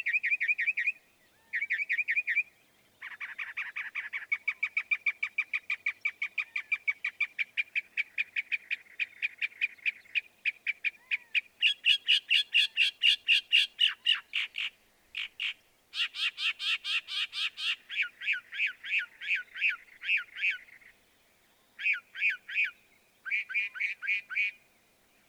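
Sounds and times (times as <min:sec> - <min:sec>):
Northern mockingbird song: 0:00.0 - 0:24.6.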